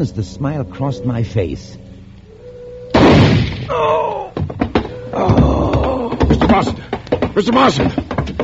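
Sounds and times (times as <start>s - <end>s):
speech: 0.0s - 1.9s, 3.7s - 4.4s, 5.1s - 8.0s
gunshot in a radio drama: 3.0s - 3.7s
person crying out: 3.7s - 6.3s.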